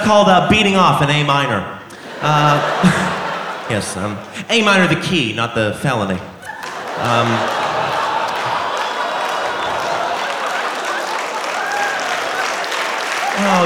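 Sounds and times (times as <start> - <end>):
speech: 0.1 - 3.1, 3.7 - 6.3, 7.0 - 7.6
laughter: 1.9 - 13.6
gentle audience applause: 6.4 - 13.6
faint crowd murmur: 6.7 - 13.6.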